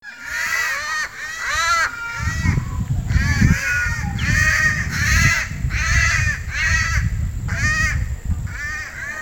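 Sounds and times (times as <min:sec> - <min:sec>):
Cuban palm crow giving nasal arched caws: 0:00.1 - 0:09.2.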